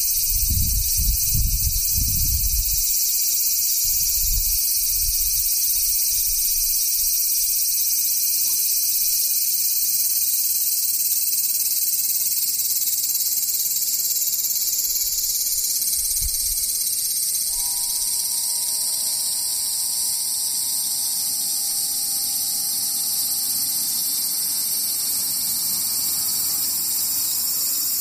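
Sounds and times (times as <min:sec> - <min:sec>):
cicadas droning: 0:00.0 - 0:27.9
faint steady tone: 0:17.4 - 0:27.8.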